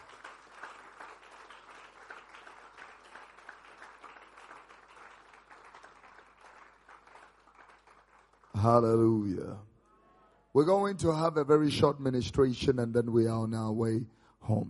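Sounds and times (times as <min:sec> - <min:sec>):
audience clapping: 0:00.0 - 0:09.2
speech: 0:08.6 - 0:09.7, 0:10.6 - 0:14.6.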